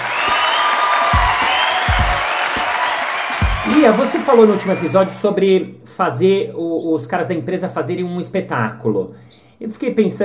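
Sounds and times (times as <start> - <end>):
audience applause: 0.0 - 5.2
speech: 3.8 - 10.2.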